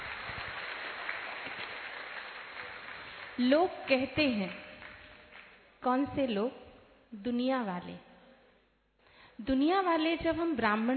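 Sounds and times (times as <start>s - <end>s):
audience applause: 0.0s - 3.4s
speech: 3.4s - 4.6s, 5.8s - 8.1s, 9.4s - 10.9s.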